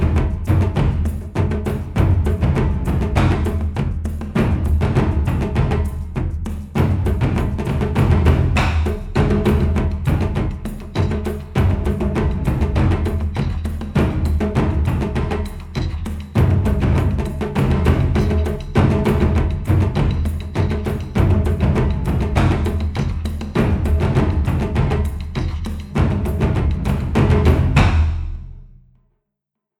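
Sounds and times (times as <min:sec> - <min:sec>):
Hawaiian taiko drum percussion stomp: 0:00.0 - 0:28.8.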